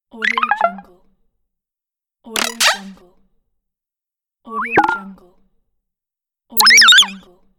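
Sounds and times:
goofy sound effects: 2.4s - 2.9s, 4.7s - 5.1s, 6.6s - 7.1s.

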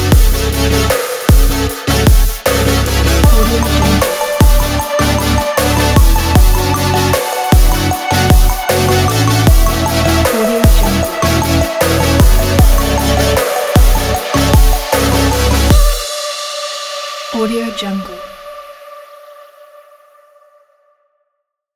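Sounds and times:
future bass music: 0.0s - 16.1s.

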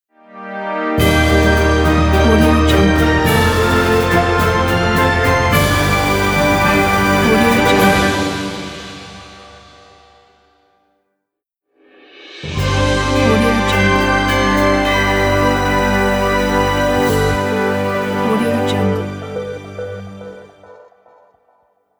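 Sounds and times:
logo fanfare: 0.3s - 9.4s, 12.5s - 20.2s.

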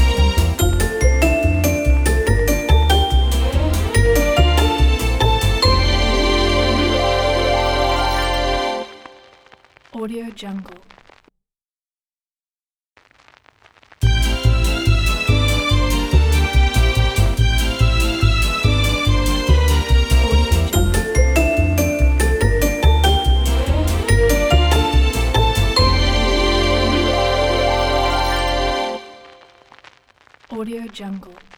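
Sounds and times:
vintage sitcom logo jingle: 0.0s - 9.3s, 14.0s - 29.5s.

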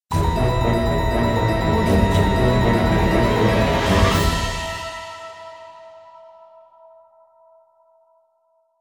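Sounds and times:
horror castle music stinger: 0.1s - 6.1s.

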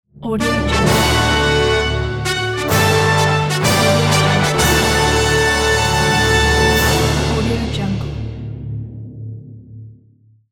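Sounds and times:
fanfare: 0.4s - 8.3s.

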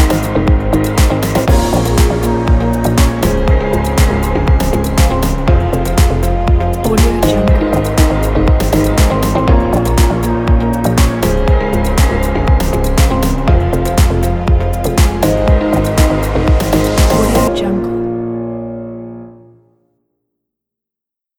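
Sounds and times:
upbeat fashion disco background music: 0.0s - 17.9s.

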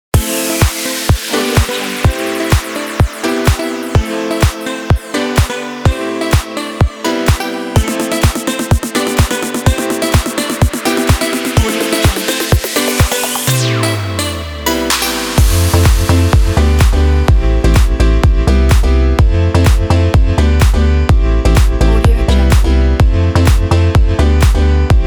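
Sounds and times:
house music: 0.1s - 25.0s.

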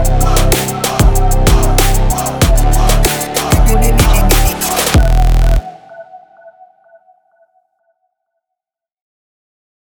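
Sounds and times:
trap beat: 0.0s - 5.8s.

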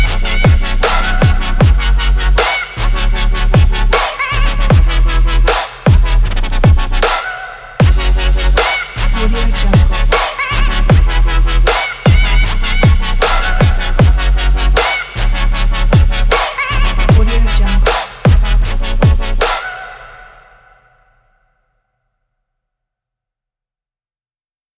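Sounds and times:
future bass music: 0.0s - 19.8s.

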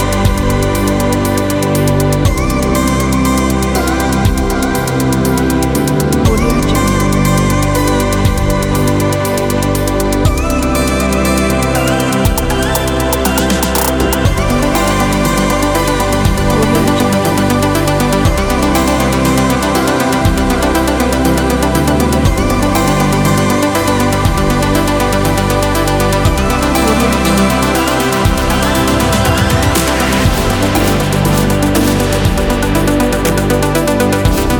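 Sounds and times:
chill soundscape: 0.0s - 34.5s.

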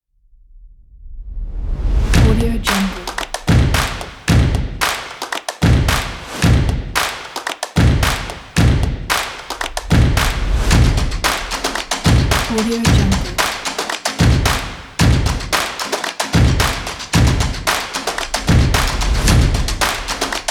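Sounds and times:
claps: 2.2s - 20.4s
stomps: 2.2s - 20.4s.

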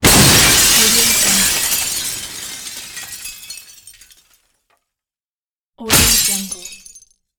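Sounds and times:
glass smashing: 0.0s - 4.5s, 5.8s - 7.2s.

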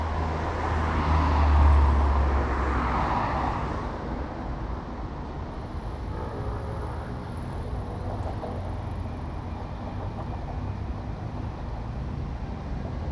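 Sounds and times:
busy city traffic: 0.0s - 13.0s
trams: 5.2s - 13.0s.

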